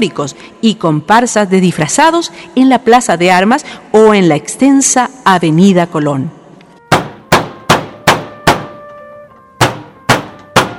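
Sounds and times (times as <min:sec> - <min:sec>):
speech: 0:00.0 - 0:06.4
knocking on a door: 0:06.9 - 0:08.8, 0:09.6 - 0:10.7.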